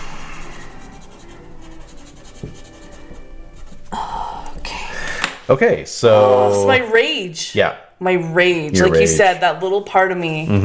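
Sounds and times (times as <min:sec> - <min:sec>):
pen scratching across paper writing notes by hand: 0:00.0 - 0:03.9
speech: 0:05.5 - 0:10.6.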